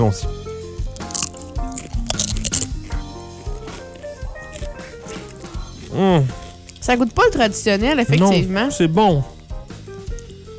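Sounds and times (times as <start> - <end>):
speech: 0.0 - 0.4, 6.0 - 9.3
steady tonal music: 0.0 - 10.5
crunching bites into a yellow tortilla chip: 1.0 - 6.8.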